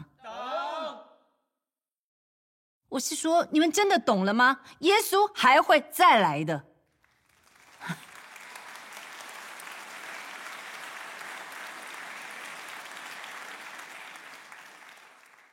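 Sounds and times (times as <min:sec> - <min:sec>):
speech: 0:02.9 - 0:06.7, 0:07.8 - 0:08.0
audience clapping: 0:06.8 - 0:15.5.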